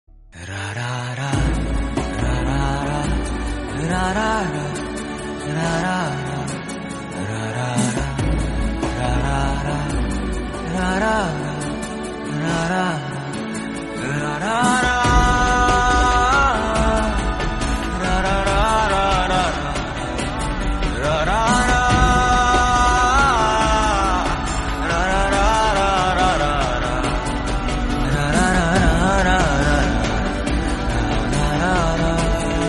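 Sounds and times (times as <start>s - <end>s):
birthday background music: 0.1s - 32.6s.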